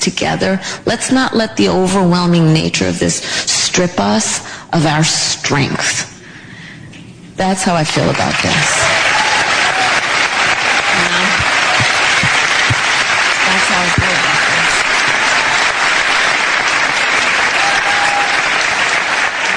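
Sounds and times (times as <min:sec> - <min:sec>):
speech: 0:00.0 - 0:06.1, 0:07.4 - 0:09.0
audience applause for Kamala Harris: 0:08.1 - 0:19.5.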